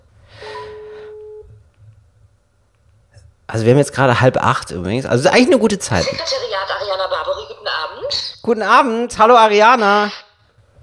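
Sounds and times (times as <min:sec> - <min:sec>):
phone call ringing on speakerphone: 0:00.4 - 0:01.5
speech: 0:03.5 - 0:06.6, 0:08.1 - 0:10.2.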